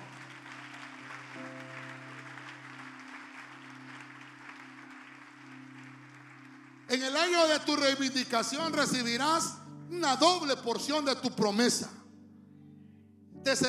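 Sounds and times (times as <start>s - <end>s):
audience clapping: 0.0s - 8.8s
speech: 6.9s - 12.0s, 13.5s - 13.6s.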